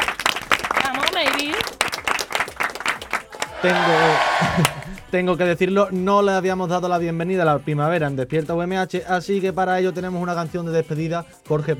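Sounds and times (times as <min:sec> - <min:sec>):
audience applause: 0:00.0 - 0:05.1
speech: 0:03.6 - 0:11.7.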